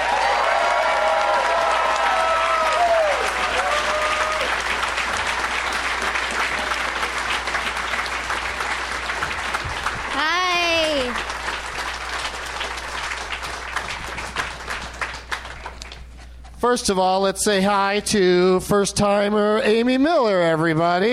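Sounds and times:
crowd whoops and cheers: 0.0s - 4.8s
audience applause welcoming guests: 0.0s - 16.2s
speech: 16.7s - 21.1s.

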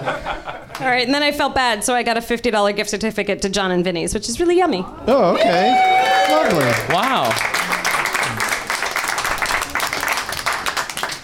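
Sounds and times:
speech: 0.0s - 7.7s
people clapping: 5.5s - 11.2s.

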